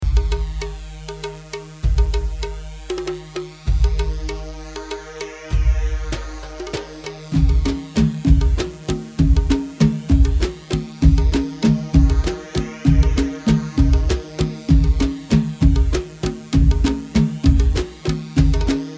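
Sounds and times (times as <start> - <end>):
khaleeji Aarda rhythm in 3/4: 0.0 - 18.9.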